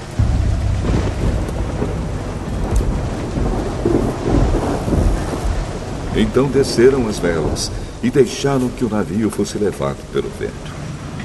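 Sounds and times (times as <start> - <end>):
rolling thunder: 0.0 - 8.1
heavy rain: 0.0 - 11.2
speech: 6.2 - 10.8.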